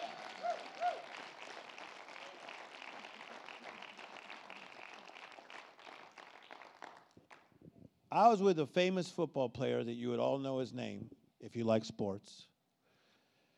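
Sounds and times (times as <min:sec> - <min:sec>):
people clapping: 0:00.0 - 0:07.6
speech: 0:08.1 - 0:12.5.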